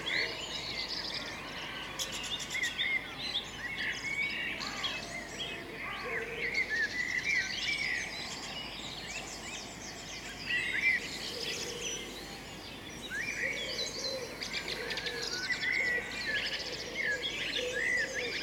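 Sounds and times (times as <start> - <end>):
birds singing: 0.0 - 18.4.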